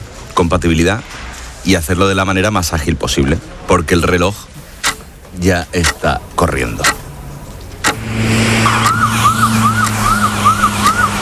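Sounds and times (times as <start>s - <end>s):
road noise: 0.0s - 11.2s
speech: 0.4s - 4.5s, 5.4s - 7.0s
ambulance engine drone: 6.8s - 11.2s
ambulance siren wailing while the vehicle drives: 8.1s - 11.2s.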